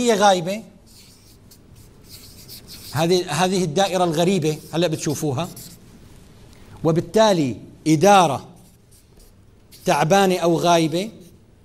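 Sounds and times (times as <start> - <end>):
speech: 0.0 - 0.7, 2.9 - 5.6, 6.8 - 8.5, 9.8 - 11.2
writing on a board with the left hand: 0.9 - 5.8, 8.5 - 11.6.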